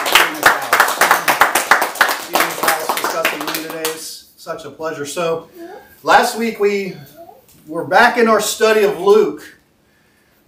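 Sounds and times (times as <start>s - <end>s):
audience applause: 0.0s - 4.0s
speech: 4.5s - 7.1s, 7.7s - 9.6s.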